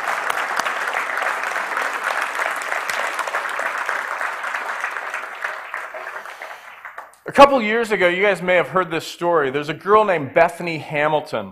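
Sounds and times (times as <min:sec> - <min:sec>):
audience clapping: 0:00.0 - 0:07.7
speech: 0:07.4 - 0:11.4.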